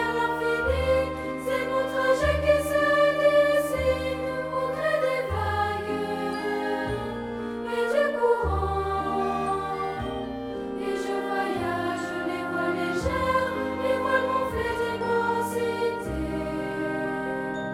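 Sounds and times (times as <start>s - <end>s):
voices: 0.0s - 17.6s
orchestra playing: 0.0s - 17.7s.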